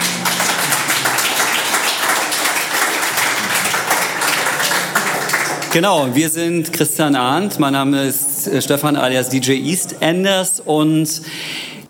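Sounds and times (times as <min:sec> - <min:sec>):
audience applause: 0:00.0 - 0:06.2
speech: 0:05.7 - 0:11.6.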